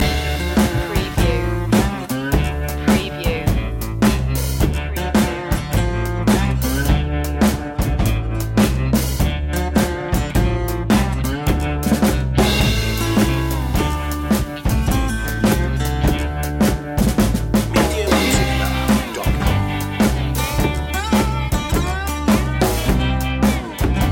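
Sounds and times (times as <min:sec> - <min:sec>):
blues loop: 0:00.0 - 0:24.0.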